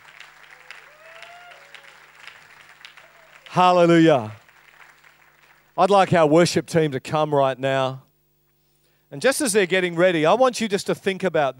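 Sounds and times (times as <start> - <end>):
audience applause and cheering: 0.0 - 5.8
speech: 3.6 - 4.4, 5.8 - 8.0, 9.1 - 11.5.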